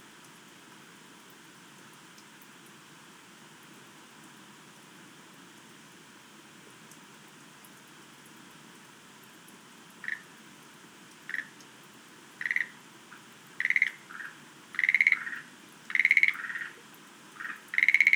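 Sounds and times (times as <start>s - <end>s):
Schlegel's green tree frogs rattling croaks: 10.0s - 10.3s, 11.3s - 11.6s, 12.4s - 12.8s, 13.6s - 16.8s, 17.4s - 18.1s.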